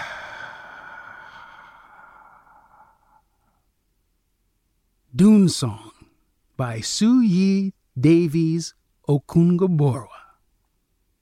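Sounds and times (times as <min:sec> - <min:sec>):
long soft breathy exhale: 0:00.0 - 0:03.6
speech: 0:05.2 - 0:05.9, 0:06.6 - 0:10.1.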